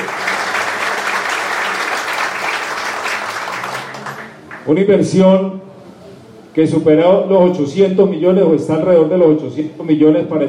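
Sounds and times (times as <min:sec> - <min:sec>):
audience applause: 0:00.0 - 0:04.7
speech: 0:04.7 - 0:05.6, 0:06.6 - 0:10.4.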